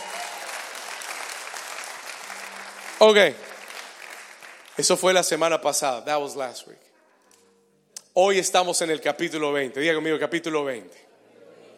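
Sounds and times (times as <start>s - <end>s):
audience applause: 0.0s - 5.2s
speech: 3.0s - 3.4s, 4.8s - 6.9s, 8.2s - 11.0s.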